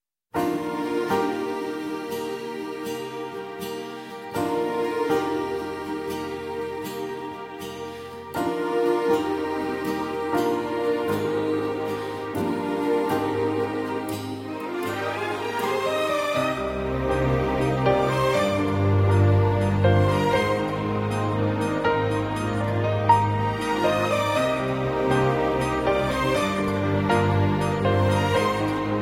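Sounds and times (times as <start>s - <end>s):
sad love ringtone music: 0.5s - 29.0s.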